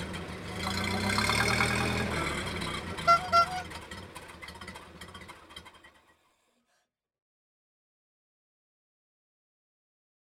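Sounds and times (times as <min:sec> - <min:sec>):
vintage Ford Model A car: 0:00.0 - 0:07.0.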